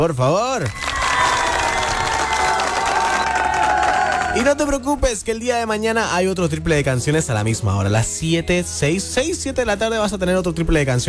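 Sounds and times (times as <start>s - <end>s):
speech: 0.0s - 1.0s, 4.4s - 11.0s
audience applause: 0.6s - 4.8s.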